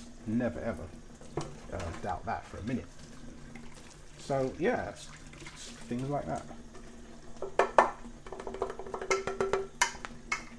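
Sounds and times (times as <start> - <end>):
speech: 0.2 - 3.0, 4.2 - 6.6
dishes clinking as a plate is washed in a very hot sink: 7.4 - 10.5.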